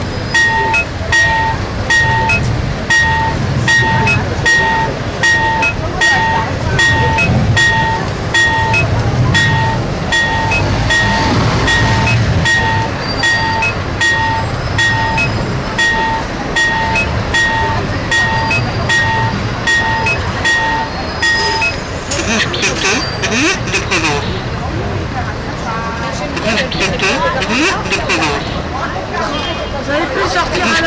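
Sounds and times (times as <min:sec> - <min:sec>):
accessible pedestrian signal in Paris: 0:00.0 - 0:30.8.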